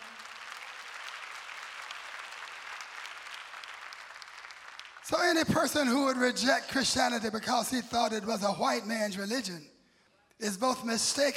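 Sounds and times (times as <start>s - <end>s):
audience clapping: 0.0s - 7.2s
speech: 5.1s - 9.7s, 10.4s - 11.3s.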